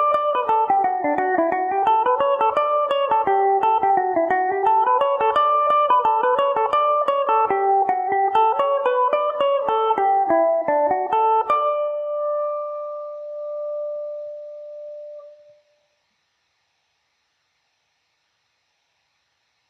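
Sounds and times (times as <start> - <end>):
Irish mandolin playing in D major: 0.0 - 15.2.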